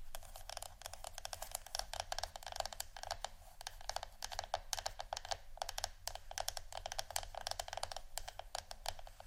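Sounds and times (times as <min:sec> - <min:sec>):
wooden ASMR triggers clicking and tapping: 0:00.2 - 0:09.2.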